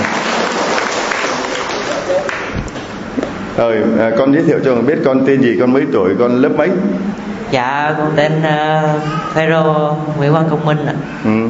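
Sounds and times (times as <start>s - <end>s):
audience applause: 0.0s - 2.5s
speech: 3.6s - 11.4s.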